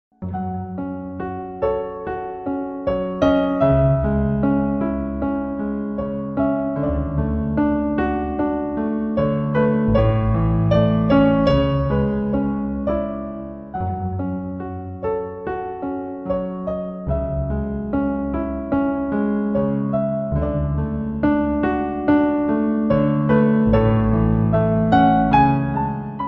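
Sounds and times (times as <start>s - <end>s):
sad piano: 0.1s - 26.2s.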